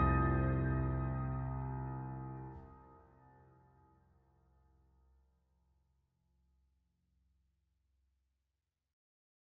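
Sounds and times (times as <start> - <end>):
piano cover: 0.0 - 2.8.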